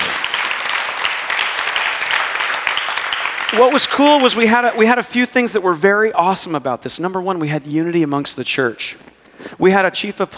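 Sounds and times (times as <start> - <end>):
audience clapping: 0.0 - 5.0
speech: 3.5 - 10.3.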